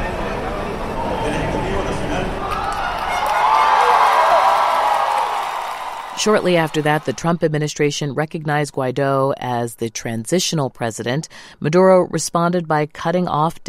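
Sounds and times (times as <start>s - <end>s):
large outdoor crowd cheering at political rally: 0.2s - 7.4s
people shouting and whooping: 2.4s - 7.2s
speech: 6.2s - 13.6s.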